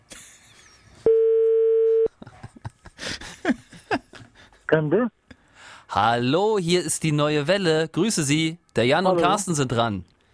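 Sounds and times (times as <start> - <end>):
telephone call ringing tone: 1.1 - 2.1
speech: 4.7 - 5.2, 6.0 - 10.1.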